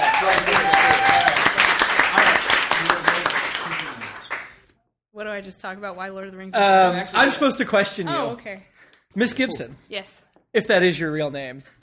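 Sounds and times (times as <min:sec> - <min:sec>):
audience applause: 0:00.0 - 0:04.6
speech: 0:05.3 - 0:11.8.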